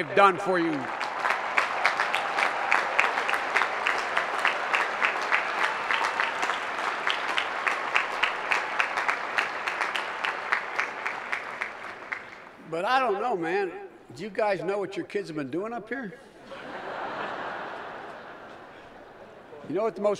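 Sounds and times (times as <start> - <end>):
speech: 0.0 - 1.0, 12.7 - 16.3, 19.7 - 20.1
graduates applauding their parents: 0.0 - 12.6
laughter: 16.2 - 19.8.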